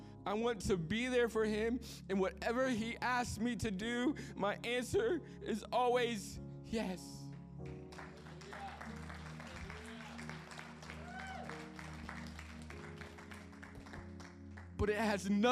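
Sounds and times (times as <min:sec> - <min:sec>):
speech: 0:00.2 - 0:07.2, 0:14.8 - 0:15.5
audience clapping: 0:07.7 - 0:14.9.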